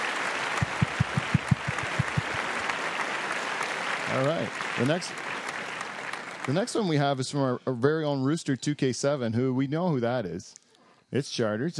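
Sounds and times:
round of applause: 0.0s - 7.4s
speech: 4.1s - 5.3s, 6.4s - 11.7s.

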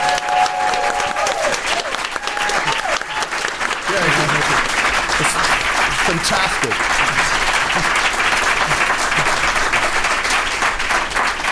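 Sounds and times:
faint tonal cheers: 0.0s - 8.0s
room of people applauding: 0.0s - 11.5s
laughter: 3.8s - 10.1s.

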